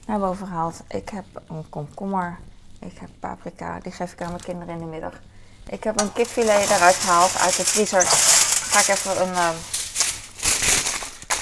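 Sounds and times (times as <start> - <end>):
speech: 0.1 - 9.8
kitchen foil crinkling: 5.8 - 11.4.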